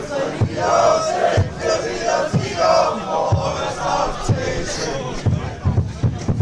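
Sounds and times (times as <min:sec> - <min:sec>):
football fans chanting at a match: 0:00.0 - 0:05.8.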